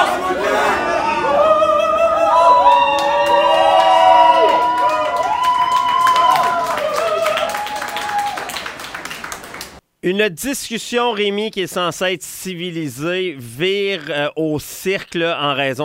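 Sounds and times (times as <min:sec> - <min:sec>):
crowd shouting as a protester interrupts a political discussion: 0:00.0 - 0:08.4
scattered clapping and cheering: 0:01.2 - 0:09.8
speech: 0:10.1 - 0:15.8.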